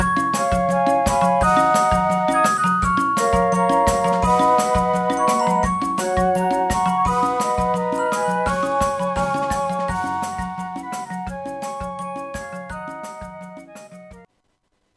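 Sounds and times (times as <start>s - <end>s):
flute corps playing rock: 0.0s - 14.2s
rock percussion: 0.0s - 14.3s.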